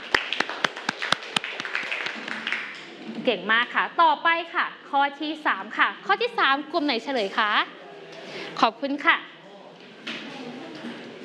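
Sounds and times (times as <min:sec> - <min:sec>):
classroom clapping: 0:00.0 - 0:03.0
speech: 0:03.2 - 0:07.8, 0:08.6 - 0:09.3.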